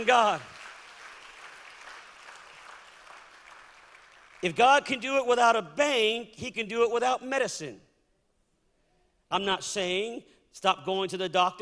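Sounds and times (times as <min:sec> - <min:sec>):
speech: 0:00.0 - 0:00.6, 0:04.4 - 0:07.8, 0:09.3 - 0:11.6
audience clapping hands: 0:00.0 - 0:04.6.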